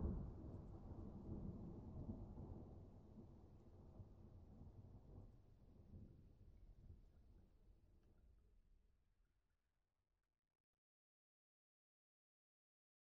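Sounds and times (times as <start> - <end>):
thunder on an island: 0.0 - 5.1.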